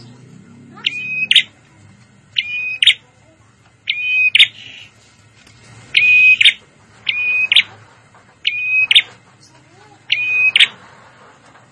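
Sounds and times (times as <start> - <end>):
prinia calls: 0.7 - 1.6, 2.4 - 3.1, 3.8 - 4.9, 5.9 - 7.8, 8.4 - 10.8.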